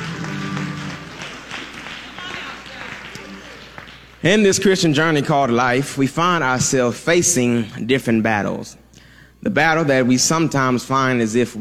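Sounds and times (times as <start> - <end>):
people clapping in praise: 0.0 - 4.7
speech: 4.2 - 8.8, 9.4 - 11.5.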